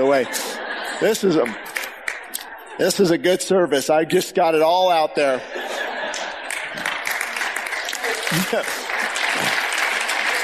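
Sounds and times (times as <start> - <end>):
speech: 0.0 - 1.7, 2.8 - 5.6, 8.3 - 8.8
laughter: 0.0 - 10.4
crowd clapping: 1.2 - 2.5, 6.0 - 10.4.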